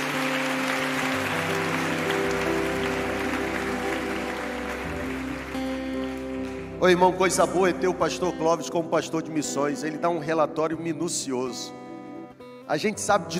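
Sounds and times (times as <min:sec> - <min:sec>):
audience clapping: 0:00.0 - 0:08.4
speech: 0:06.8 - 0:11.8, 0:12.7 - 0:13.3.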